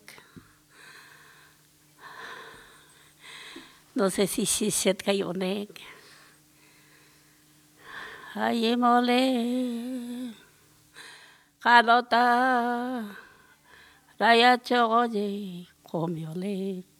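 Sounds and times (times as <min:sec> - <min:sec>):
lullabies sung in Pampa del Indio Chaco: 0:04.0 - 0:06.0, 0:08.2 - 0:10.5, 0:11.6 - 0:13.4, 0:14.2 - 0:16.9.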